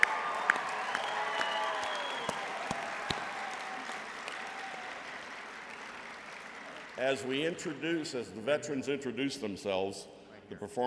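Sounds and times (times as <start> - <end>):
crowd round of applause: 0.0 - 7.8
speech: 7.0 - 10.8.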